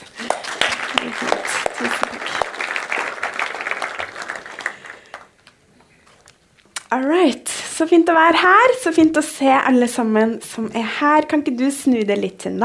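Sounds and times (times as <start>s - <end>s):
audience applause: 0.0s - 5.5s
speech: 6.9s - 12.6s.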